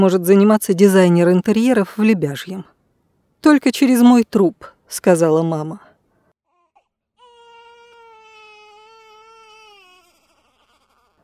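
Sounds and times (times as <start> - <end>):
speech: 0.0 - 2.7, 3.4 - 5.9
baby girl crying at night: 6.5 - 11.2.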